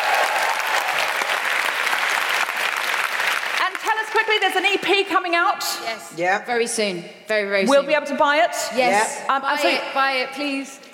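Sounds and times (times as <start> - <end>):
audience applause: 0.0 - 4.3
speech: 4.3 - 10.9.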